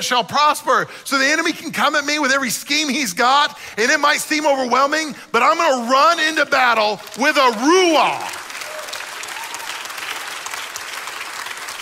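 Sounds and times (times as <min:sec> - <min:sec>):
speech: 0:00.0 - 0:08.4
audience clapping: 0:06.7 - 0:11.8.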